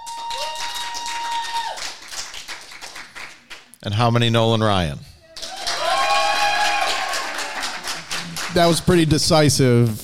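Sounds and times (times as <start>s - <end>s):
audience clapping and cheering: 0.0s - 3.8s, 5.3s - 9.2s
speech: 3.8s - 5.1s, 8.5s - 10.0s.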